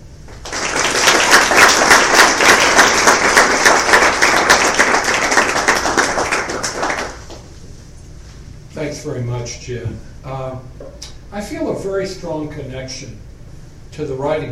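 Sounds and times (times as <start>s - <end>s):
applause welcoming a provost at a university event: 0.3s - 7.4s
speech: 8.9s - 13.3s, 13.9s - 14.5s.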